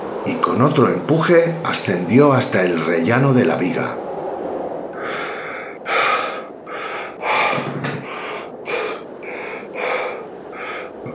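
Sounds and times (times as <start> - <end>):
speech: 0.2 - 4.0
heavy panting from exertion: 5.0 - 11.1.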